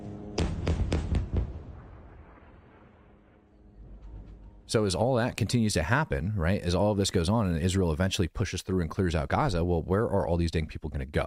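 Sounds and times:
airstrike explosions from a video: 0.4s - 5.4s
low rumble: 0.4s - 6.4s
speech: 4.7s - 11.2s.

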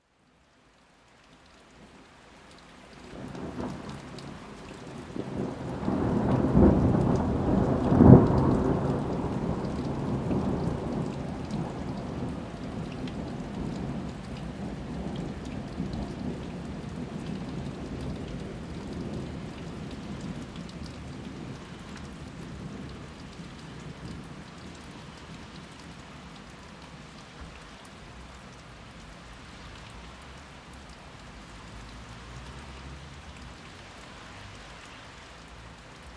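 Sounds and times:
thunderstorm in May: 3.2s - 24.5s.

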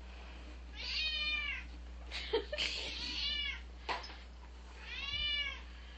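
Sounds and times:
low steady hum: 0.0s - 5.9s
cat meowing: 0.7s - 1.7s, 2.9s - 3.6s, 4.8s - 5.6s.

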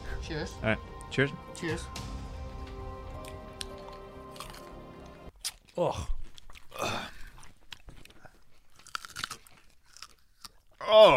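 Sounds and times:
speech: 0.3s - 2.2s, 5.8s - 6.2s, 10.9s - 11.1s
person chewing a piece of raw ginger: 3.0s - 10.9s.

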